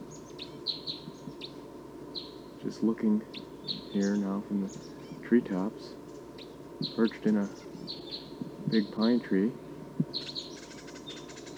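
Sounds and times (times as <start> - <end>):
decoy birds calling: 0.0 - 11.5
speech: 2.6 - 6.0, 6.8 - 8.0, 8.7 - 9.6.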